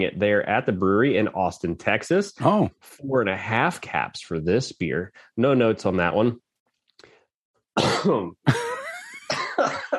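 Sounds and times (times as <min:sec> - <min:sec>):
speech: 0:00.0 - 0:06.4, 0:07.8 - 0:08.7
throat clearing: 0:07.8 - 0:08.4
man coughing and choking after inhaling his own spit: 0:07.8 - 0:09.9.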